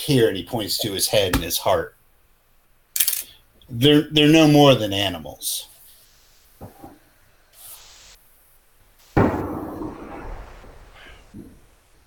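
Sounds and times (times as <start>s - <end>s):
speech: 0.0s - 2.0s, 3.7s - 5.7s
gunshot blast with rumbling tail: 9.1s - 11.2s.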